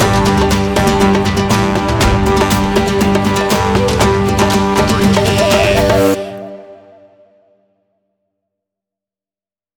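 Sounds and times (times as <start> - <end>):
neo ethno folk group playing: 0.0 - 6.9.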